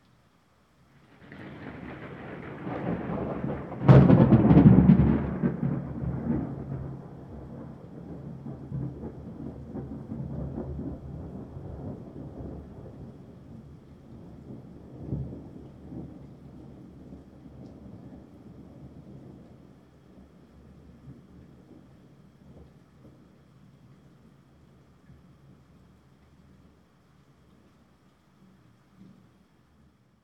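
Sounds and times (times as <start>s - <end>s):
huge exploding thunder: 1.2s - 13.1s.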